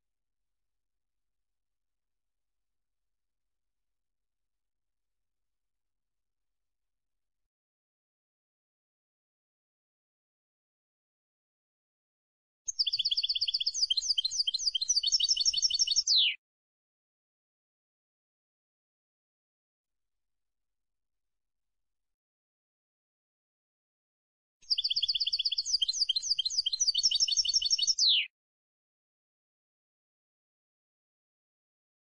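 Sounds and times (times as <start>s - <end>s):
European goldfinch song: 12.7s - 16.4s, 24.6s - 28.3s.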